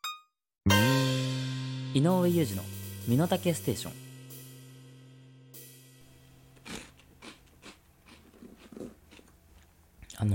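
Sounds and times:
speech: 0:00.7 - 0:00.9, 0:02.0 - 0:04.0
someone crunching and chewing cheese balls: 0:06.6 - 0:10.2.

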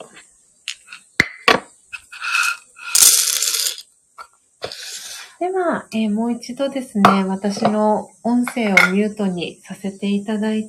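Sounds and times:
coffee beans pouring into a hand grinder: 0:02.8 - 0:03.8
speech: 0:05.4 - 0:10.6.

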